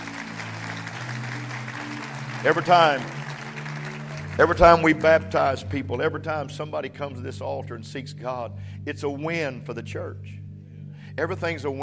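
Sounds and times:
audience clapping hands: 0:00.0 - 0:05.6
speech: 0:02.4 - 0:03.2, 0:04.4 - 0:10.4, 0:11.2 - 0:11.8.

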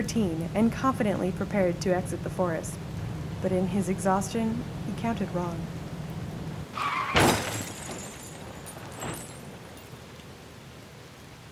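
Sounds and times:
speech: 0:00.1 - 0:05.8
car crashing into tree: 0:06.8 - 0:10.0
glass shattering: 0:06.8 - 0:10.2.

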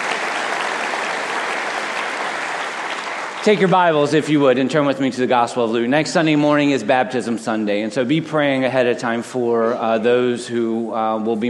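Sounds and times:
audience applause: 0:00.0 - 0:04.1
speech: 0:03.4 - 0:11.4.

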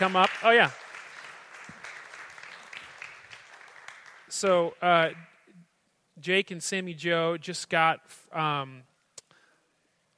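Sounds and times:
speech: 0:00.0 - 0:00.8, 0:04.4 - 0:05.3, 0:06.2 - 0:08.9
audience applause: 0:00.0 - 0:04.4.

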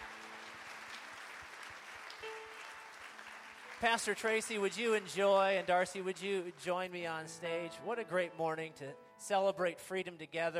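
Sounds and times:
church audience round of applause: 0:00.0 - 0:07.0
speech: 0:03.8 - 0:10.5.

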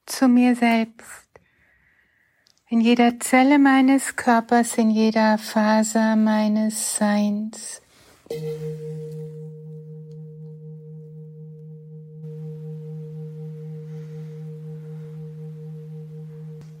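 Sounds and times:
speech: 0:00.2 - 0:01.2, 0:02.7 - 0:10.1
gong strike with deep ringing tone: 0:08.3 - 0:16.7.

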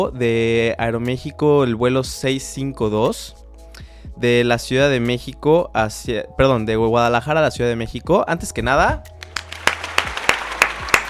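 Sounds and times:
speech: 0:00.0 - 0:03.4, 0:04.1 - 0:09.2
sharp claps: 0:09.1 - 0:11.0.

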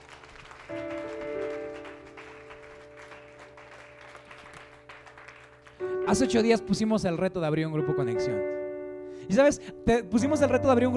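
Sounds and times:
audience applause: 0:00.0 - 0:06.3
speech: 0:06.1 - 0:08.6, 0:09.3 - 0:10.9.

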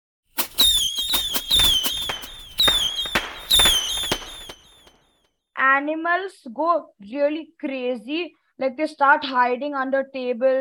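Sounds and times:
firecrackers bursting: 0:00.4 - 0:04.9
speech: 0:05.8 - 0:10.5.

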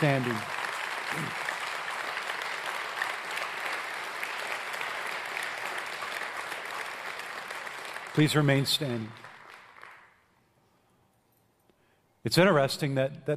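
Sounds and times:
speech: 0:00.0 - 0:01.4, 0:08.2 - 0:09.2, 0:12.2 - 0:13.3
audience applause: 0:00.0 - 0:10.2.

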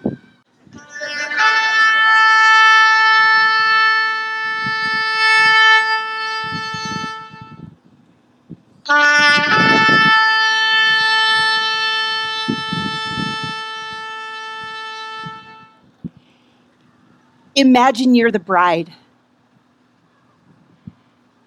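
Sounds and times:
shofar ram's horn blasts: 0:00.8 - 0:07.8, 0:08.9 - 0:15.9
speech: 0:17.6 - 0:19.0.

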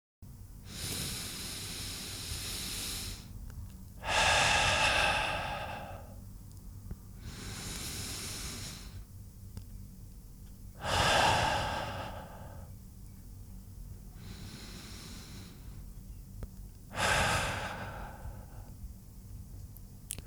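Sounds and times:
slow deep breathing: 0:00.7 - 0:03.4, 0:04.0 - 0:06.2, 0:07.2 - 0:09.1, 0:10.8 - 0:12.7, 0:14.1 - 0:15.9, 0:16.9 - 0:18.8.

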